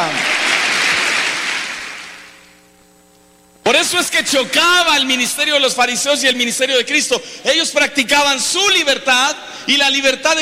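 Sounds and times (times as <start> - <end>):
audience applause: 0.0 - 2.5
speech: 3.9 - 10.4.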